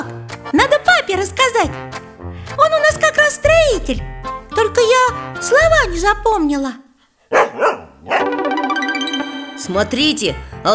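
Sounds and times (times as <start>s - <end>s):
speech: 0.5s - 6.8s, 9.6s - 10.7s
dog barking: 7.3s - 8.3s.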